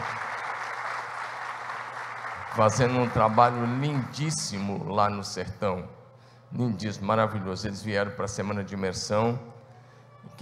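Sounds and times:
audience applause: 0.0 - 4.2
speech: 2.6 - 9.6.

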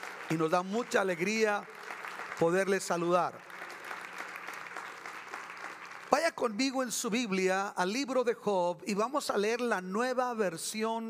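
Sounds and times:
audience applause: 0.0 - 6.4
speech: 0.3 - 1.8, 2.4 - 3.5, 6.1 - 11.0.

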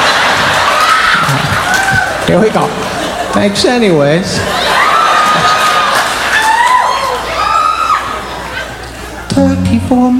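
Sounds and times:
crowd clapping: 0.0 - 2.7, 4.8 - 7.3
laughter: 0.0 - 3.8, 4.4 - 6.6, 8.0 - 9.3
speech: 2.3 - 4.6, 9.4 - 10.1.

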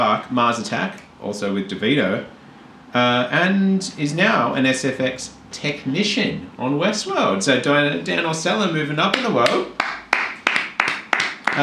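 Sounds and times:
speech: 0.0 - 9.8
hand claps: 9.1 - 11.6.

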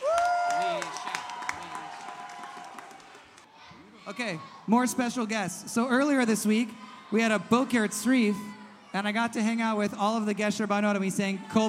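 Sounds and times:
audience applause: 0.0 - 3.5
speech: 4.1 - 11.6.

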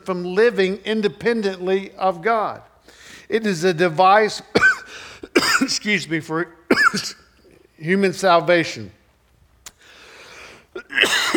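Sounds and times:
speech: 0.0 - 7.2, 7.8 - 9.0, 10.8 - 11.3
person coughing after choking on swallowed spit: 4.6 - 5.8, 6.7 - 7.3, 10.7 - 11.3.

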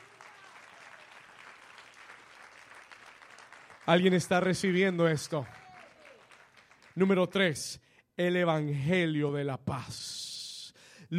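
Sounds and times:
loud applause: 0.0 - 7.0
speech: 3.9 - 5.6, 7.0 - 10.2.

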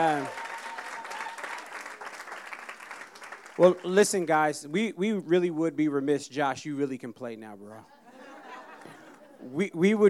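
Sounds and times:
speech: 0.0 - 0.4, 3.6 - 8.0, 9.4 - 10.0
audience applause: 0.0 - 4.0
laughter: 7.9 - 9.6.

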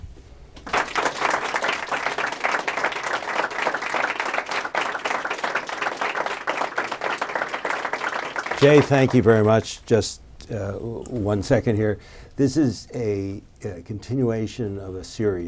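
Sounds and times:
seminar audience at a public health school applauding: 0.6 - 9.6
speech: 8.6 - 15.4.

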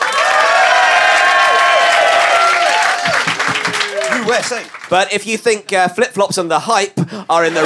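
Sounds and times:
cheers and whistles: 0.0 - 4.3
audience applause: 0.0 - 5.1
speech: 4.3 - 7.6.

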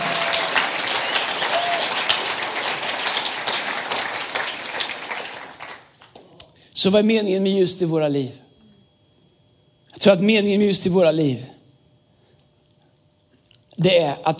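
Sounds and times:
audience applause: 0.0 - 6.2
speech: 6.8 - 8.4, 10.0 - 11.6, 13.8 - 14.3.

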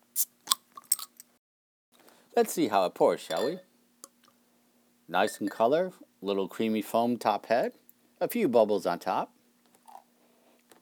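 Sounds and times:
speech: 2.4 - 3.7, 5.1 - 9.4
beer bottle pried open with a bottle opener: 3.3 - 3.6.

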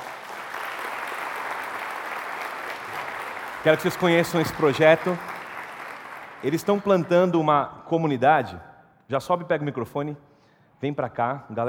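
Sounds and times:
audience applause: 0.0 - 7.1
speech: 3.6 - 5.3, 6.4 - 11.6.

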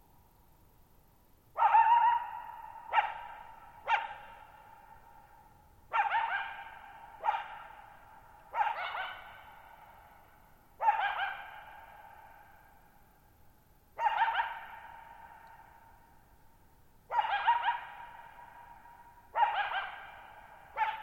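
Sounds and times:
coyote barking and yipping: 1.6 - 4.9, 5.9 - 10.1, 10.8 - 12.6, 14.0 - 15.8, 17.1 - 21.0.

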